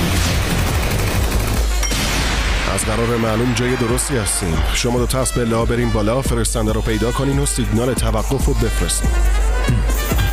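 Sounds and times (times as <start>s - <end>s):
flashbang grenade explosion in a video game: 0.0s - 4.8s
speech: 2.9s - 10.0s.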